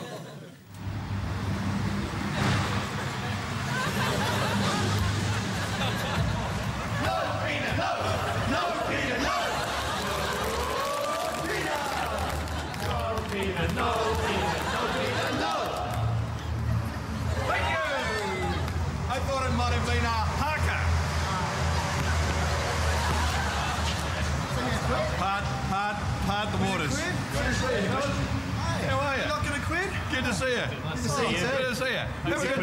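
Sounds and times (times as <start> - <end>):
laughter: 0.0 - 0.7, 2.3 - 18.8, 21.0 - 25.2
crowd noise: 0.0 - 32.6
cheer squad chanting: 6.7 - 16.2.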